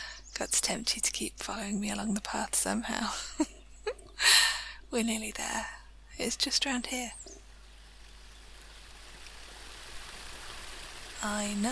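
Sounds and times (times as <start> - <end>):
speech: 0.4 - 3.6, 4.2 - 7.4, 11.2 - 11.7
small waterfall: 7.4 - 11.7.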